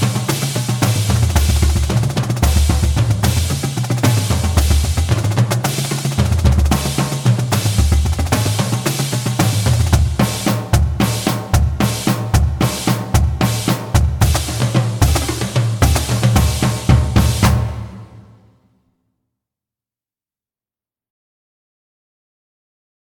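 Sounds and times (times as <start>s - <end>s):
drumline playing: 0.0s - 18.4s.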